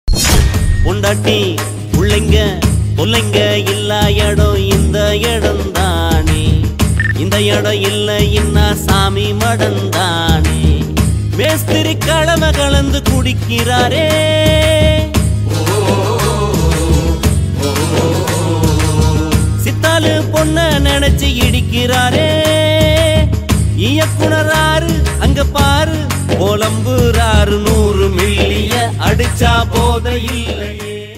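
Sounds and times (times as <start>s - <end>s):
sad Tamil song: 0.8s - 31.1s.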